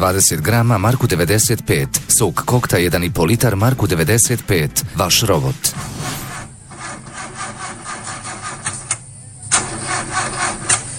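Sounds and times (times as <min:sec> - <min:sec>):
speech: 0:00.0 - 0:06.2
old car engine starter cranking and failing to start: 0:06.8 - 0:10.9.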